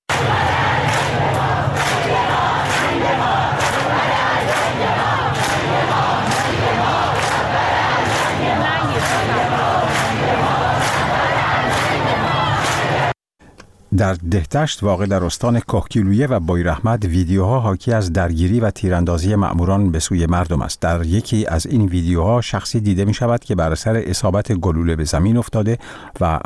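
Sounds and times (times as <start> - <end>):
crowd chanting protest slogan in street: 0.0 - 13.2
speech: 13.9 - 26.4.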